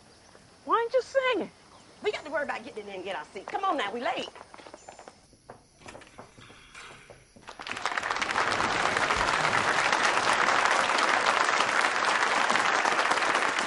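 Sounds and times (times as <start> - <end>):
speech: 1.0 - 4.5
audience clapping: 7.4 - 13.6.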